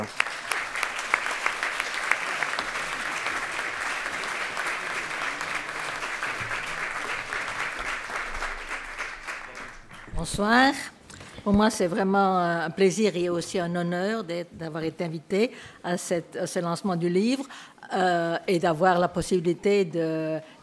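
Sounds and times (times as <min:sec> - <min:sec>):
audience applause: 0:00.0 - 0:10.1
speech: 0:10.2 - 0:20.6.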